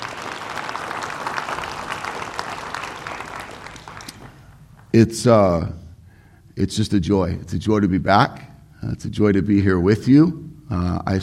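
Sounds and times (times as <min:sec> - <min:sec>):
audience applause: 0:00.0 - 0:04.4
speech: 0:04.9 - 0:05.8, 0:06.6 - 0:11.2.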